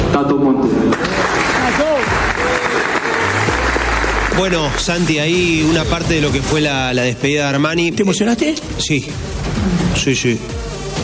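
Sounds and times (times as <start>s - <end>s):
speech: 0.3s - 1.0s, 4.4s - 11.0s
crowd applauding: 0.9s - 5.7s
faint voices and cheers: 1.0s - 4.9s.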